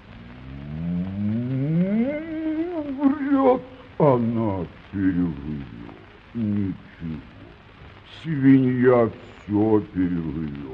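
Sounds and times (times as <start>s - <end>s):
bull mooing: 0.2s - 3.0s
speech: 3.5s - 7.3s, 8.1s - 10.7s.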